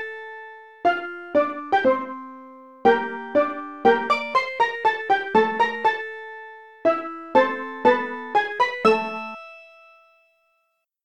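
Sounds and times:
march music: 0.9 - 6.3, 6.9 - 9.4.

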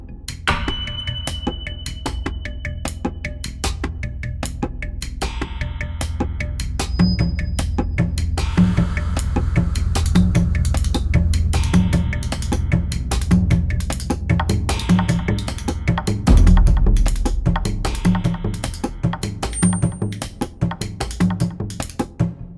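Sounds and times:
action loop: 0.5 - 22.3.

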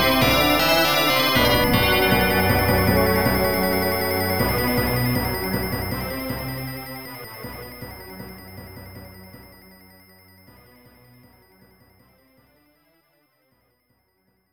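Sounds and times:
boss appearance music: 0.0 - 7.9.

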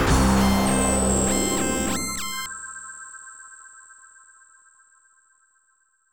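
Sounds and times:
game over jingle: 0.1 - 2.5.

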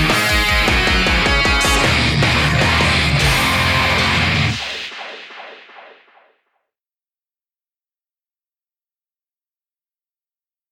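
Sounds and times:
melodic metal music: 0.0 - 5.5.

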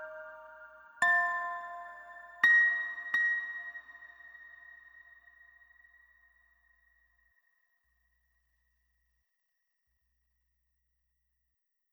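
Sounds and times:
lullaby music: 0.0 - 4.6.

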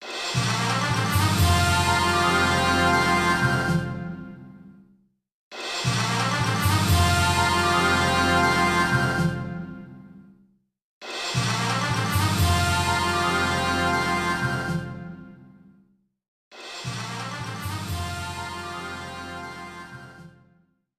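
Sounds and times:
intro fanfare: 0.0 - 4.3, 5.8 - 9.9, 11.4 - 15.2, 16.8 - 20.3.

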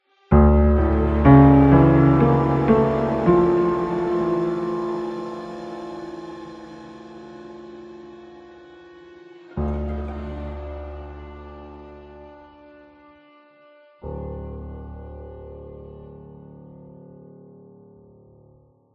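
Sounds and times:
short mystery piano music: 0.3 - 8.3.

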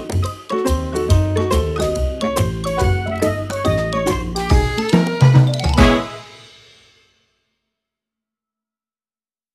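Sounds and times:
music intro: 0.0 - 7.0.

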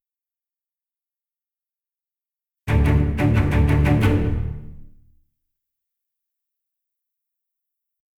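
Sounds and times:
combat music ending: 2.7 - 5.0.

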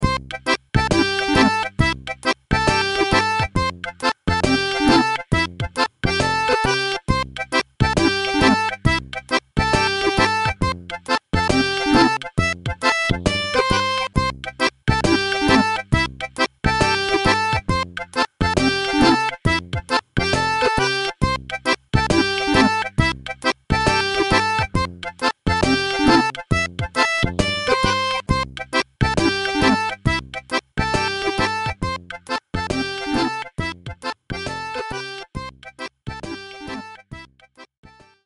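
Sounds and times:
main music: 0.0 - 38.2.

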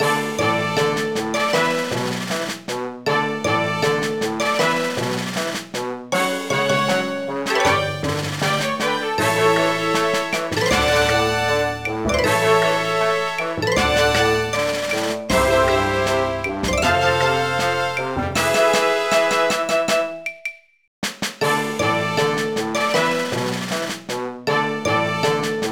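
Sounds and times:
victory music: 0.0 - 20.2, 21.4 - 25.7.

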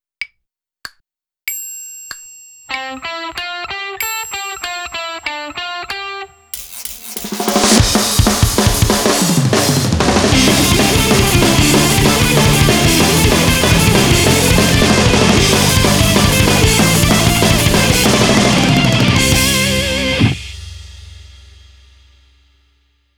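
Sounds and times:
guitar practice: 2.7 - 9.0, 10.0 - 20.5.

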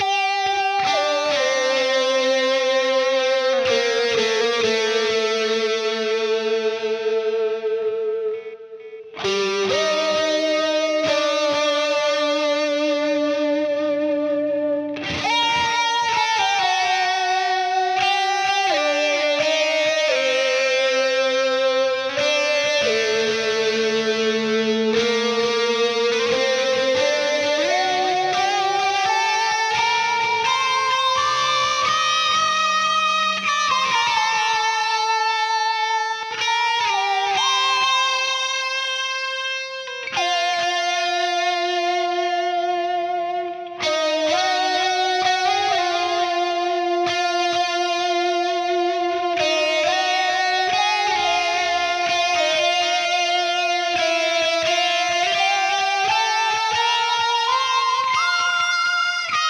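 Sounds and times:
reversed guitar layer: 0.0 - 59.4.

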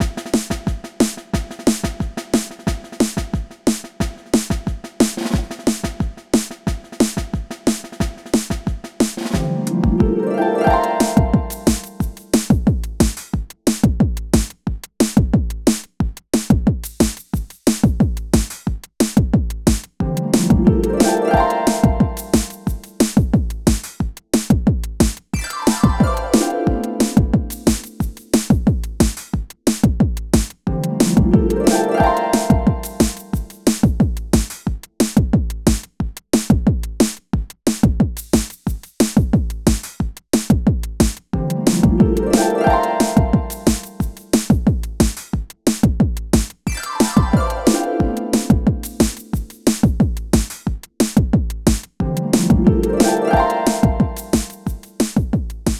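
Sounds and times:
drum layer: 0.0 - 37.2, 37.8 - 55.7.

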